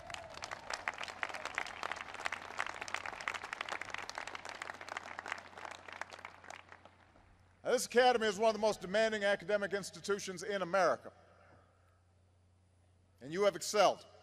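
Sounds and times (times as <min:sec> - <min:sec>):
crowd applause: 0:00.0 - 0:07.2
speech: 0:07.7 - 0:11.2, 0:13.3 - 0:14.1.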